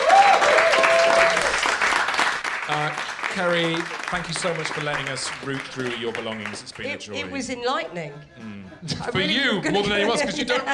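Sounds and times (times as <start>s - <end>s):
crowd applause: 0.0s - 7.1s
speech: 3.4s - 10.7s.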